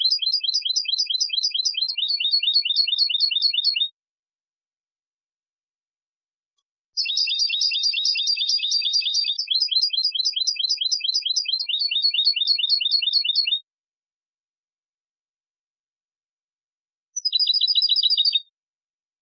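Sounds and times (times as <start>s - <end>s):
European goldfinch Carduelis carduelis singing: 0.0s - 3.9s, 7.0s - 13.6s, 17.2s - 18.5s.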